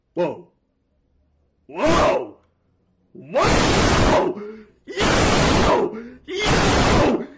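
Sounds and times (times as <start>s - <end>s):
person shouting: 1.7s - 2.4s, 3.2s - 7.3s.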